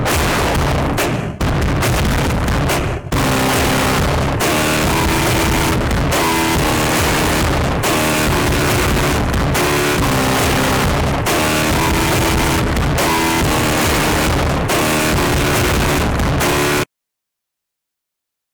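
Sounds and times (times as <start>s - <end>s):
epic wub bass sounds: 0.0s - 16.9s.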